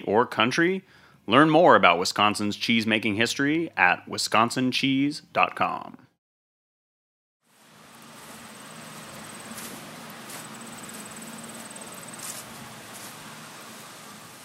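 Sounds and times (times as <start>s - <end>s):
speech: 0.1s - 6.0s
bees buzzing amongst the trees of an apple orchard: 7.6s - 14.4s.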